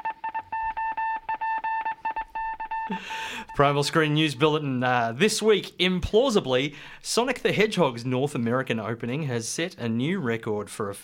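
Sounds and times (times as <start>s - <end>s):
RKO beeps: 0.0s - 3.8s
speech: 2.9s - 11.0s.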